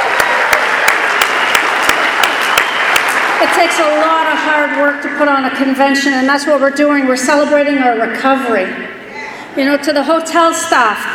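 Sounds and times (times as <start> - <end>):
audience applause: 0.0 - 4.3
speech: 3.4 - 9.0, 9.6 - 11.1.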